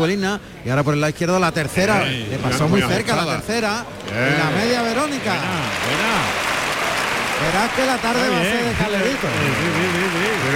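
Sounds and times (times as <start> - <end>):
speech: 0.0 - 6.6, 7.4 - 10.5
large bullring crowd applauding: 4.0 - 10.5.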